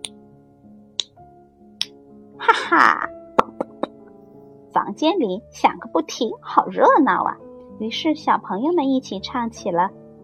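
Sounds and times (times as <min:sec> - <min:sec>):
speech: 0:02.4 - 0:03.1, 0:04.9 - 0:10.0
finger snapping: 0:03.4 - 0:03.9.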